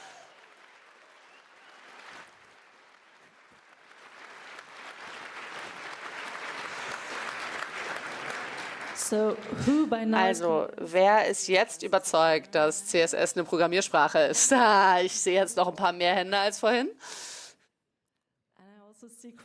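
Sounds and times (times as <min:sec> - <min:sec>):
audience applause: 0:00.0 - 0:10.6
speech: 0:09.1 - 0:17.3, 0:19.2 - 0:19.4.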